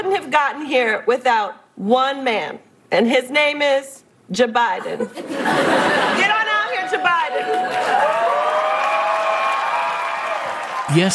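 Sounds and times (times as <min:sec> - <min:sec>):
speech: 0:00.0 - 0:07.5, 0:10.9 - 0:11.1
laughter: 0:04.8 - 0:08.0
Saturday Night Live audience cheering and applauding Dana Carvey: 0:06.7 - 0:11.1.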